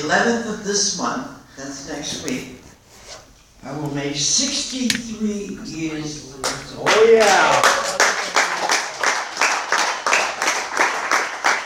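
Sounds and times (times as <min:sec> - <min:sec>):
speech: 0:00.0 - 0:02.6, 0:03.6 - 0:08.0
audience clapping in a steady rhythmic beat: 0:06.4 - 0:11.6.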